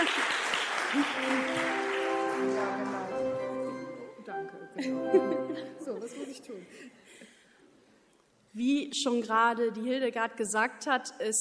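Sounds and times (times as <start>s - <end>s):
laughter: 0.0s - 1.9s, 4.8s - 7.0s
audience applause: 0.0s - 3.8s
speech: 0.9s - 1.6s, 4.4s - 7.0s, 8.5s - 11.3s.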